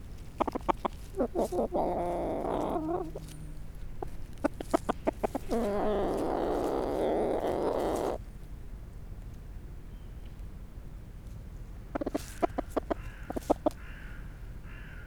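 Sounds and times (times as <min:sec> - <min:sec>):
Brahma hen clucking: 0:00.0 - 0:08.5, 0:11.8 - 0:14.3.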